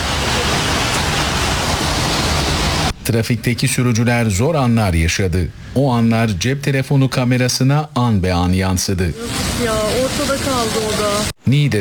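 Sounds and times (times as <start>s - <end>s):
heavy rain pouring down and flooding the streets of Dörtyol and Payas in Hatay: 0.0s - 3.0s, 9.1s - 11.4s
speech: 3.1s - 11.8s.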